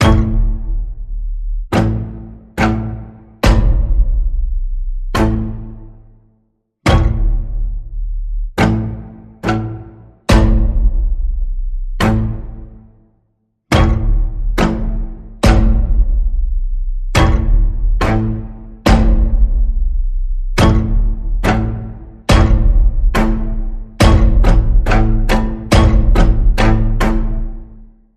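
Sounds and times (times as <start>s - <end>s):
pulsing strings in the key of A: 0.0s - 6.3s, 6.9s - 13.0s, 13.7s - 28.0s.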